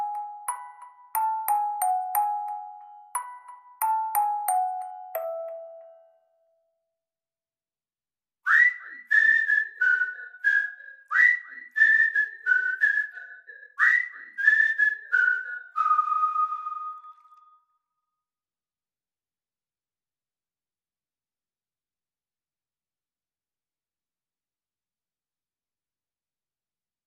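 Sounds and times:
music box: 0:00.0 - 0:06.4
whistling: 0:08.4 - 0:18.1
vocals: 0:08.6 - 0:15.5.

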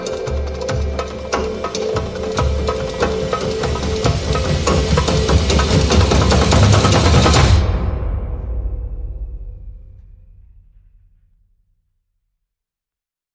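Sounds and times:
synth pads: 0:00.0 - 0:09.2
percussion: 0:00.0 - 0:11.2.

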